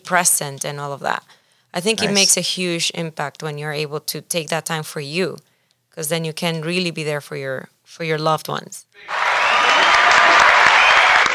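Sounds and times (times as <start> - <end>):
speech: 0.1 - 9.2
applause: 9.0 - 11.3.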